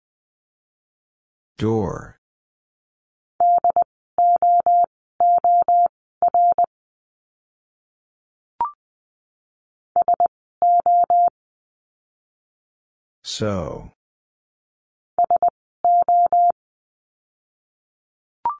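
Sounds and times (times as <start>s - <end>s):
speech: 1.6s - 2.2s, 13.3s - 14.0s
Morse code beeps at 20 wpm: 3.4s - 6.7s, 10.0s - 11.3s, 15.2s - 16.6s.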